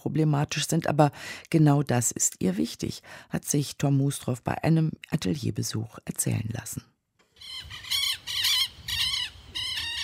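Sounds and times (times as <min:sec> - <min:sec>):
speech: 0:00.0 - 0:06.9
birds chirping: 0:07.3 - 0:10.0
wind in trees: 0:07.3 - 0:10.0.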